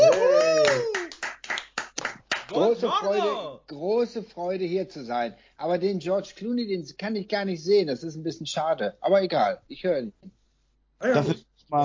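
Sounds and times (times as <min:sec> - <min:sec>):
whoop or cheer: 0:00.0 - 0:01.1
audience applause: 0:00.0 - 0:02.6
speech: 0:02.6 - 0:10.4, 0:11.0 - 0:11.8.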